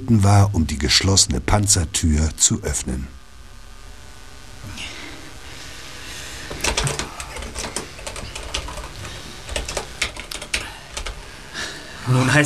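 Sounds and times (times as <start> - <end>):
low hiss: 0.0 - 12.4
speech: 0.1 - 3.2, 12.1 - 12.4
password typed on a computer keyboard: 6.5 - 11.2.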